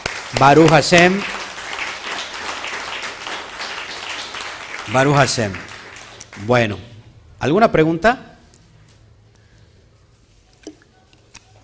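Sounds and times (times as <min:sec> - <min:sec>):
audience applause: 0:00.0 - 0:06.7
speech: 0:00.3 - 0:01.4, 0:04.9 - 0:05.7, 0:06.4 - 0:08.3.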